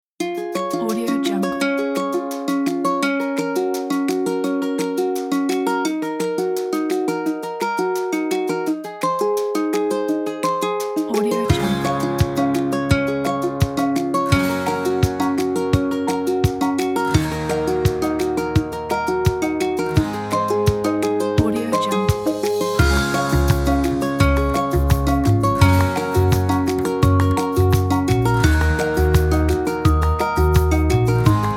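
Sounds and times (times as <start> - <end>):
happy baby music kit: 0.2 - 31.5.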